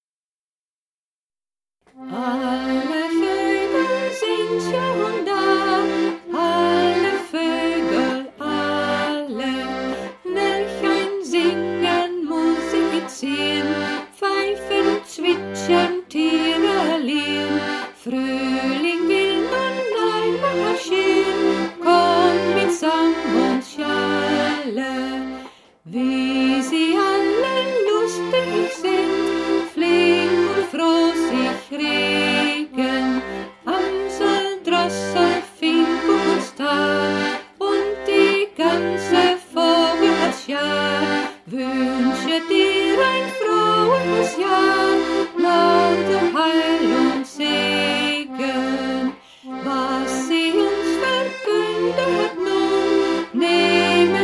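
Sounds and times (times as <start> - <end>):
person singing a song: 1.9 - 54.2.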